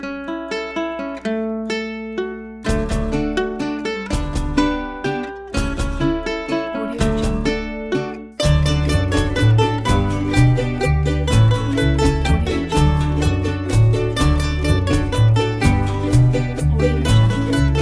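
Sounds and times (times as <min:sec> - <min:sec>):
Mexican fiesta music: 0:00.4 - 0:17.8.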